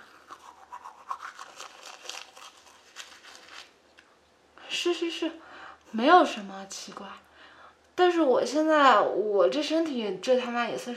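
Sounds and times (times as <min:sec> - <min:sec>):
brushing of teeth with a toothbrush: 0:00.0 - 0:03.7
speech: 0:04.8 - 0:07.3, 0:08.0 - 0:10.9.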